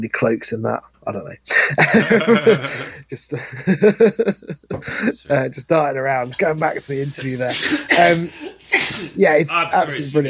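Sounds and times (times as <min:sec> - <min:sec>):
speech: 0:00.0 - 0:10.2
laughter: 0:01.6 - 0:05.3
sneeze: 0:07.5 - 0:09.2.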